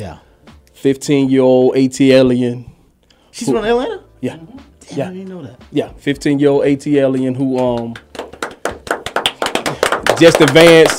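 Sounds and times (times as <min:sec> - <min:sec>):
speech: 0:00.0 - 0:02.7, 0:03.4 - 0:08.1, 0:10.2 - 0:10.9
applause, hands clapping: 0:06.9 - 0:10.9.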